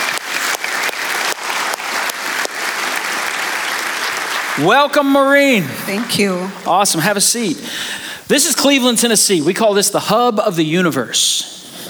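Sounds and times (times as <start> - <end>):
audience in a First Baptist church in Cleveland Tennessee clapping: 0.0 - 6.7
speech: 4.6 - 11.5.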